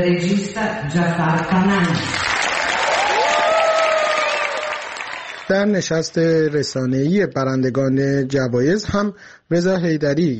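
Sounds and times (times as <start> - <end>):
speech: 0.0 - 2.2, 5.5 - 10.3
standing ovation applause in the Venice Film Festival main hall: 1.8 - 7.0.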